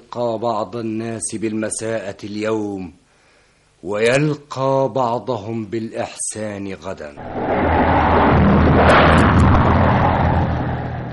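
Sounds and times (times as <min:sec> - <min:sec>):
speech: 0:00.1 - 0:03.0, 0:03.8 - 0:08.0
thunder sound effect in a stage performance of Oedipus at Colonus: 0:07.2 - 0:11.1.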